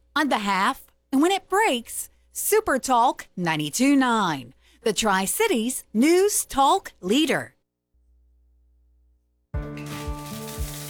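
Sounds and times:
speech: 0.2s - 7.6s
running water of a hot shower: 9.9s - 10.8s.

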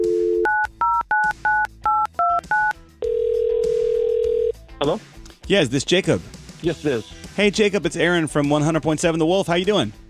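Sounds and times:
phone number being dialed with touch-tone beeps: 0.0s - 4.5s
phone line ringing tone: 1.9s - 4.5s
speech: 4.8s - 10.0s.

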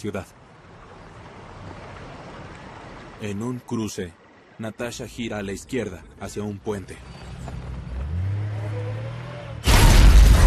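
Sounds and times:
speech: 0.0s - 0.4s, 3.2s - 7.2s
missile hitting a 4x4 on a bridge exploding in a fireball: 9.6s - 10.4s.

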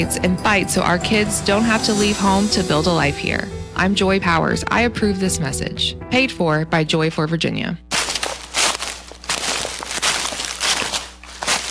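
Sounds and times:
speech: 0.0s - 7.9s
leaves crunching underfoot: 7.9s - 11.6s.

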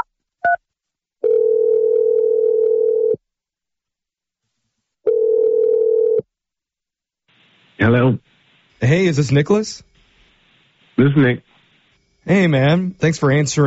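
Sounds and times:
telephone dial tone while a number is dialed: 1.2s - 3.2s, 5.1s - 6.2s
speech: 8.9s - 9.9s, 11.0s - 11.5s, 12.2s - 13.6s.

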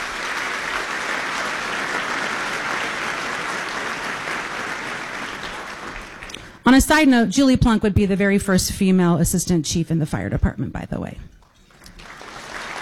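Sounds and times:
audience applause: 0.0s - 6.6s, 11.7s - 12.7s
speech: 6.7s - 11.3s.

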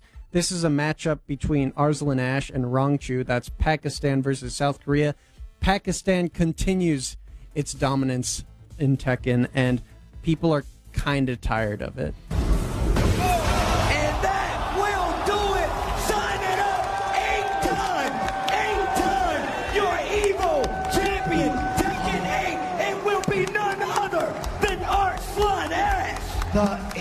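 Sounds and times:
speech: 0.3s - 12.6s, 26.6s - 26.8s
esports tournament crowd cheering and yelling: 13.0s - 26.9s
higher shouts and whoops: 13.2s - 26.9s.

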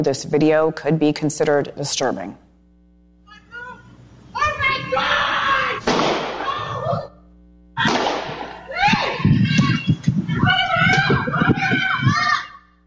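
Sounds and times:
speech: 0.0s - 2.4s
children calling out: 3.3s - 7.2s, 7.8s - 12.8s
gunshots recorded by a doorbell camera: 5.8s - 6.5s, 7.8s - 8.6s.

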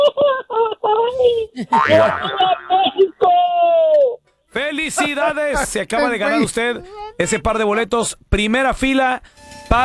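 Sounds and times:
laughter: 0.1s - 3.9s, 4.7s - 7.7s
speech: 1.6s - 2.9s, 4.7s - 9.8s
traditional Mexican grito shout: 5.0s - 7.5s.

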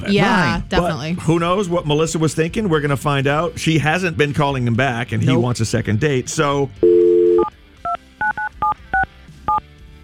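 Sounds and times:
speech: 0.0s - 7.0s
telephone dial tone: 6.8s - 9.6s.

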